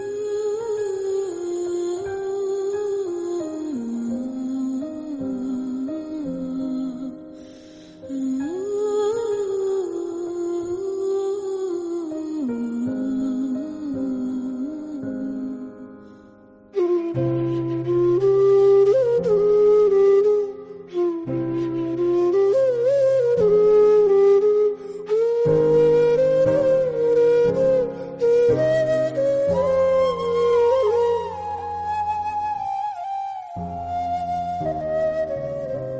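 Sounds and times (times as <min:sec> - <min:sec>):
sad background music: 0:00.0 - 0:35.9.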